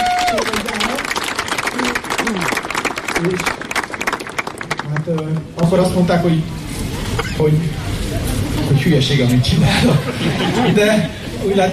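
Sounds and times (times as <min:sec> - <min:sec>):
voices calling out and cheering: 0:00.0 - 0:01.0
audience applause: 0:00.0 - 0:05.8
speech: 0:03.2 - 0:03.6, 0:05.1 - 0:06.6, 0:07.4 - 0:07.8, 0:08.8 - 0:11.7
laughter: 0:08.2 - 0:11.4.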